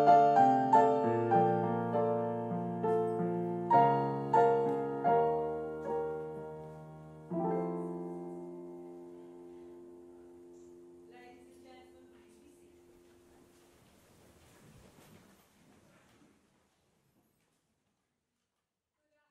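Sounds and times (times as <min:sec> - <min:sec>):
solo piano: 0:00.0 - 0:13.8.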